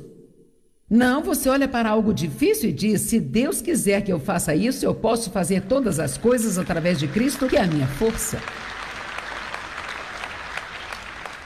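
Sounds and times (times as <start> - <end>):
speech: 0.9 - 8.7
audience applauding: 6.2 - 11.4.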